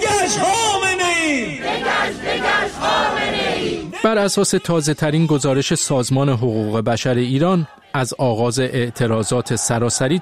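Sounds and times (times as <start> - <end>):
protesters chanting for democracy in Iran outside the UN office in Geneva: 0.0 - 4.0, 7.4 - 8.0, 8.6 - 10.1
speech: 0.3 - 0.6, 4.0 - 10.1.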